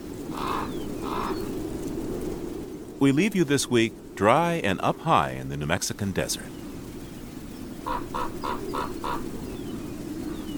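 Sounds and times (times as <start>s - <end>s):
gusts of wind across open desert: 0.0s - 10.5s
ravens, meadowlarks and mockingbirds singing: 0.3s - 1.7s, 6.4s - 10.5s
speech: 3.0s - 6.6s.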